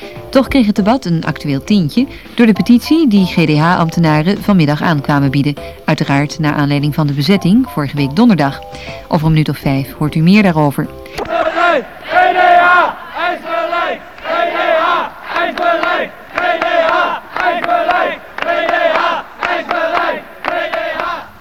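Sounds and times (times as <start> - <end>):
speech: 0.4 - 11.9
over a hundred civil servants chanting a protest slogan in unison while marching: 11.2 - 21.3.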